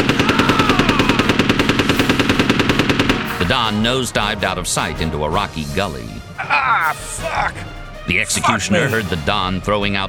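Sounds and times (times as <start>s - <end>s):
automatic gunfire: 0.0s - 3.4s
speech: 3.6s - 10.0s
laughter: 6.4s - 7.7s.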